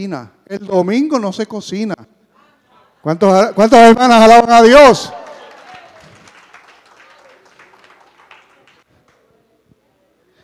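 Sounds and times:
speech: 0.0 - 2.1, 3.0 - 5.2
audience applauding: 4.9 - 8.9.

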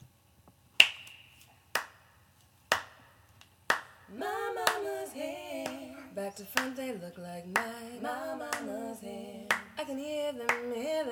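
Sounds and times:
hand clapping in home recording: 0.8 - 2.0, 2.7 - 3.1, 3.7 - 4.0, 4.6 - 4.9, 5.6 - 5.8, 6.6 - 6.8, 8.4 - 8.8, 9.5 - 9.8, 10.5 - 10.8
person singing: 4.1 - 11.0
speech: 6.3 - 11.0.

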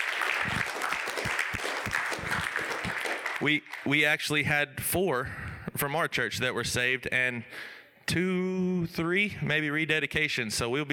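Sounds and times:
audience applause: 0.0 - 3.9
speech: 3.4 - 10.9.

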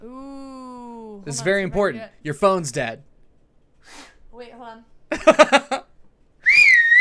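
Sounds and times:
speech: 0.0 - 0.3, 1.2 - 3.1, 3.8 - 5.8
loud shrill whistle to hail a cab: 6.4 - 6.9.

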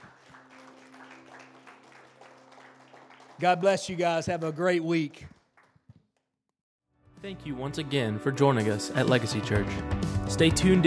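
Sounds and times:
audience applause: 0.0 - 5.8
speech: 3.4 - 5.4, 7.2 - 10.8.

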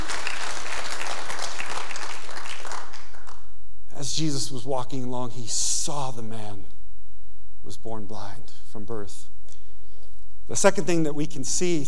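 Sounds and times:
audience applause: 0.0 - 3.4
speech: 4.1 - 6.8, 7.6 - 9.3, 10.5 - 11.8.

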